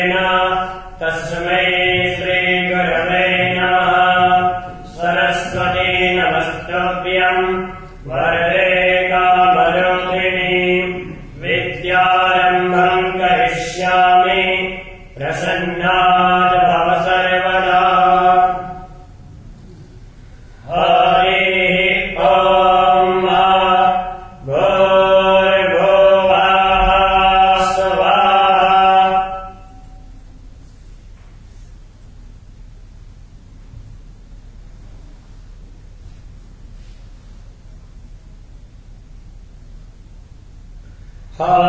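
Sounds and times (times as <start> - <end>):
Vedic chanting: 0.0 - 30.7, 41.2 - 41.6.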